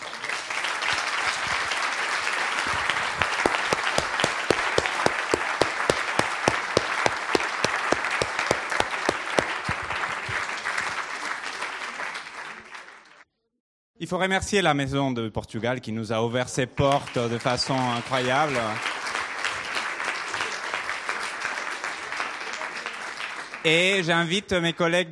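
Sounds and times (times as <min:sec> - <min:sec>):
audience applause: 0:00.0 - 0:13.1, 0:17.2 - 0:23.6
speech: 0:14.1 - 0:18.9, 0:23.6 - 0:25.1.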